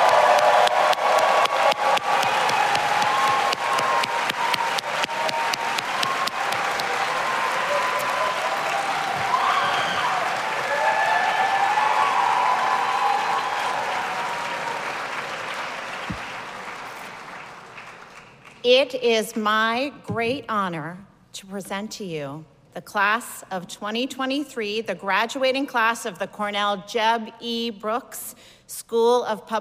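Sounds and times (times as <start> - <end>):
cheering and whoops: 0.0 - 15.6
large audience applause for graduates: 0.0 - 18.6
speech: 18.8 - 29.6.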